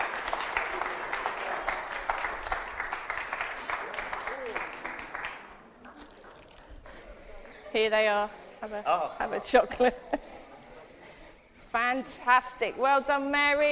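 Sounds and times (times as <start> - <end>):
audience applause: 0.0 - 6.5
speech: 7.8 - 10.1, 11.7 - 13.7
laughter: 9.2 - 11.4.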